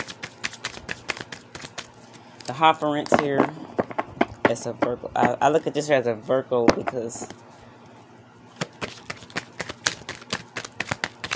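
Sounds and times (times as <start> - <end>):
deck of cards being shuffled: 0.0 - 2.2, 8.6 - 11.3
speech: 2.5 - 3.7, 4.5 - 7.4.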